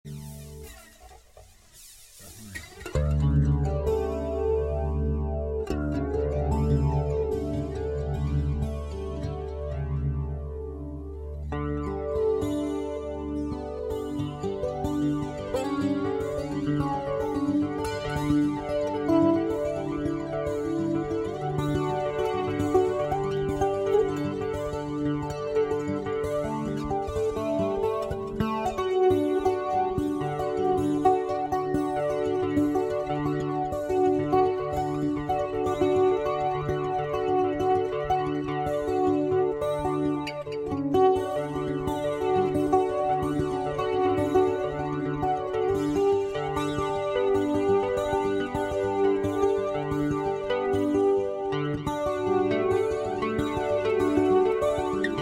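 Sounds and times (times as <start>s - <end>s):
improvised music: 0.0s - 55.1s.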